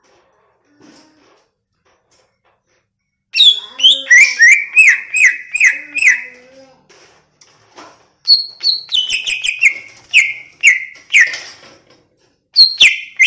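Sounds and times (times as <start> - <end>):
greater green leafbird whistling song: 3.4 - 6.4, 8.3 - 11.5, 12.6 - 13.2.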